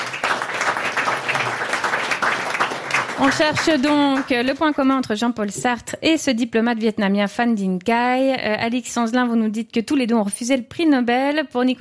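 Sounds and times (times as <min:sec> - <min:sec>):
audience applause: 0:00.0 - 0:04.7
speech: 0:03.2 - 0:11.7.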